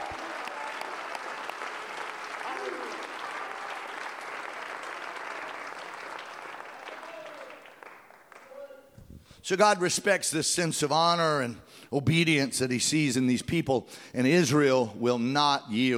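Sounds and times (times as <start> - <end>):
audience clapping: 0.0 - 8.9
speech: 9.4 - 15.9.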